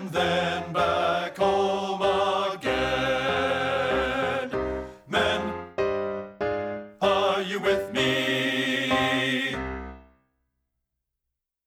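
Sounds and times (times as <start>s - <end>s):
men singing bass: 0.0s - 5.7s, 7.0s - 9.6s.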